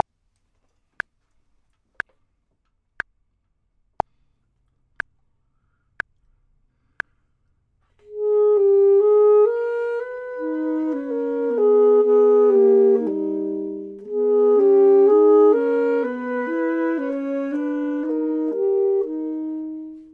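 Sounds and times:
clarinet: 8.0s - 20.1s
saxophone: 8.0s - 20.1s.

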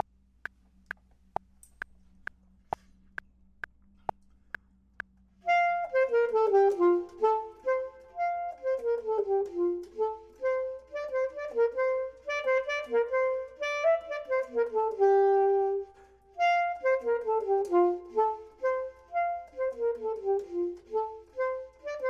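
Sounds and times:
clarinet: 5.4s - 22.0s
saxophone: 5.4s - 22.0s.

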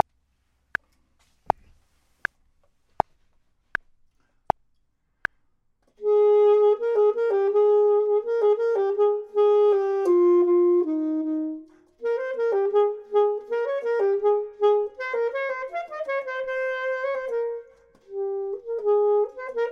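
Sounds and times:
clarinet: 6.0s - 19.6s
saxophone: 6.0s - 19.6s.

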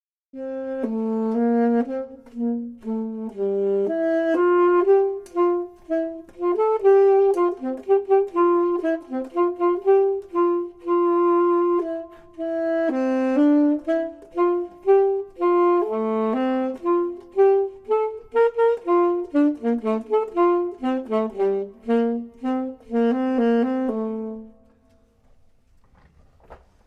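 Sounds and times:
clarinet: 0.3s - 25.1s
saxophone: 0.3s - 25.1s.

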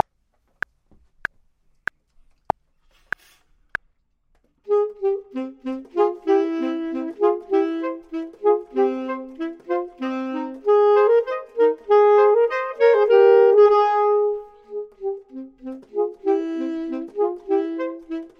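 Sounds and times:
saxophone: 4.6s - 18.3s
clarinet: 4.7s - 18.3s.

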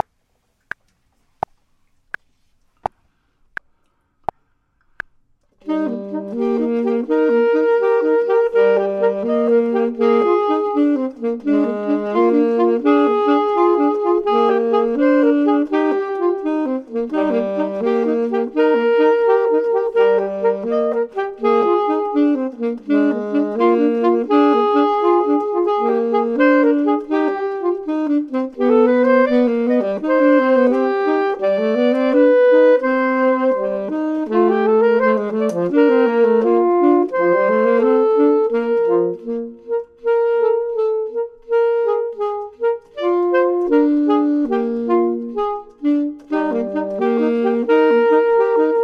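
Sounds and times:
saxophone: 4.9s - 48.8s
clarinet: 5.6s - 48.8s.

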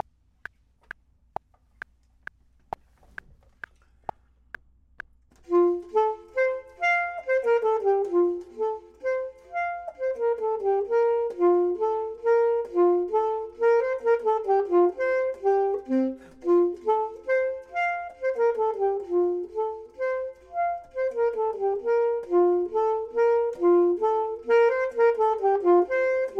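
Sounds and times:
clarinet: 5.4s - 26.3s
saxophone: 5.4s - 26.3s.

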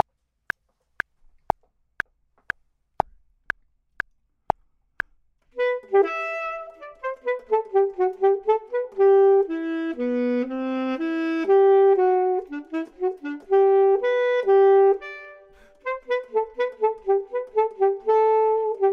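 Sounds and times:
clarinet: 5.5s - 18.9s
saxophone: 5.5s - 18.9s.

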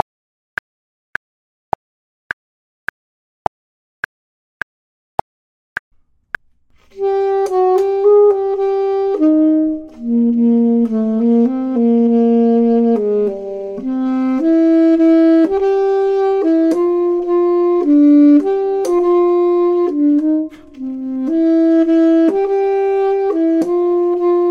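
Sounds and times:
clarinet: 6.8s - 24.5s
saxophone: 6.9s - 24.5s.

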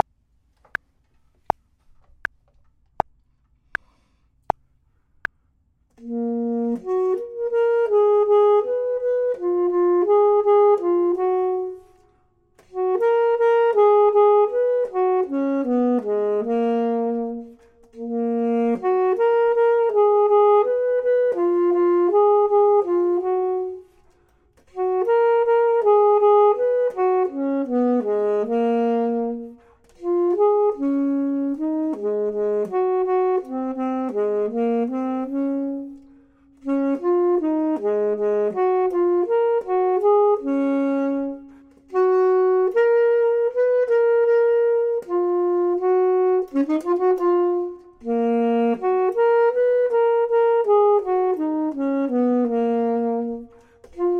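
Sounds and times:
clarinet: 0.0s - 0.8s, 5.9s - 54.1s
saxophone: 0.0s - 0.8s, 5.9s - 54.1s.

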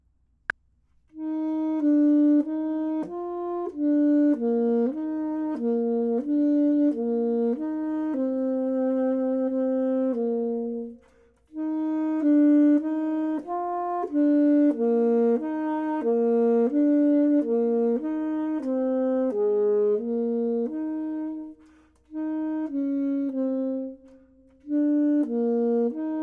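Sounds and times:
clarinet: 1.1s - 26.2s
saxophone: 1.1s - 26.2s.

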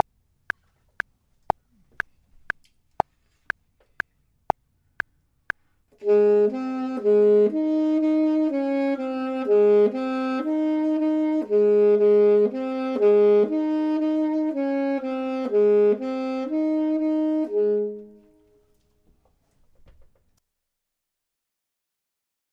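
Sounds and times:
saxophone: 6.0s - 18.8s
clarinet: 6.0s - 18.9s.

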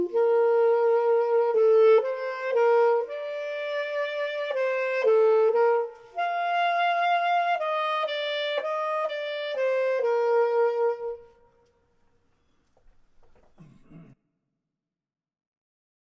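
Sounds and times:
clarinet: 0.0s - 11.8s
saxophone: 0.0s - 11.8s.

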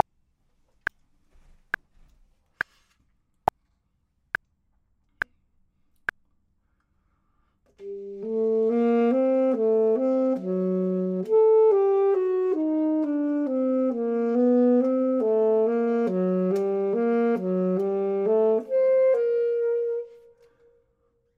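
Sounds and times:
saxophone: 7.8s - 21.1s
clarinet: 7.8s - 21.3s.

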